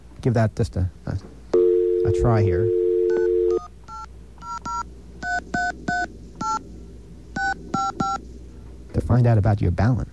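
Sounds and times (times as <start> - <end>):
speech: 0.2 - 1.3, 2.0 - 2.8, 9.2 - 10.1
low telephone line hum: 1.5 - 9.5
push-button telephone dialing tones: 1.6 - 6.6, 7.4 - 8.2.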